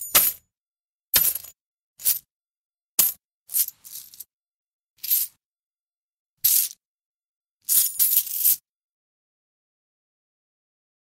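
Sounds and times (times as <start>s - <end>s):
coins in a bag: 1.2s - 2.3s, 3.0s - 4.3s, 5.0s - 5.4s, 6.4s - 6.8s, 7.6s - 8.6s.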